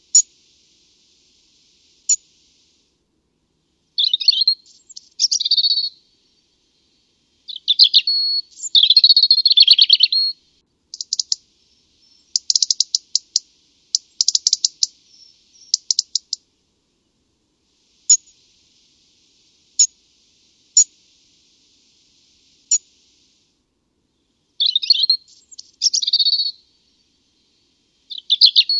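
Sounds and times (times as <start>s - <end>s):
European robin song: 4.0s - 16.4s, 24.2s - 28.7s.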